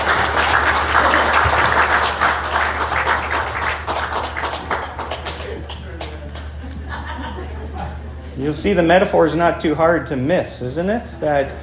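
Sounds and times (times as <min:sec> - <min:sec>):
laughter: 0:00.0 - 0:02.3, 0:04.6 - 0:08.5
audience applause: 0:00.0 - 0:07.0
speech: 0:08.4 - 0:11.6.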